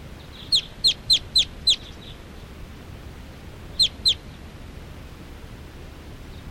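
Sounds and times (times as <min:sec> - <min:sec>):
hiss: 0:00.0 - 0:06.4
wild birds chirping from a tall tree: 0:00.2 - 0:02.5, 0:03.7 - 0:04.4.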